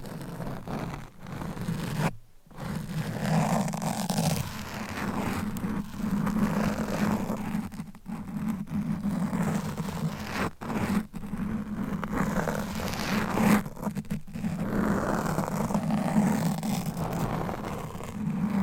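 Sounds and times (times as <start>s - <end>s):
scratching and rubbing: 0.0s - 18.6s.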